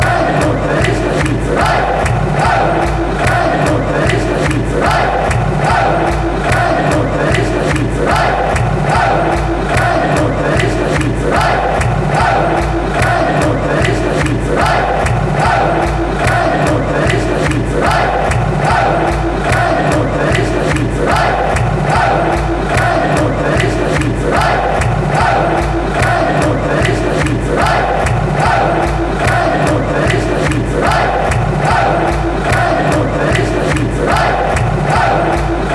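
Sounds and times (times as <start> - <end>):
fans chanting hey hey: 0.0 - 35.7.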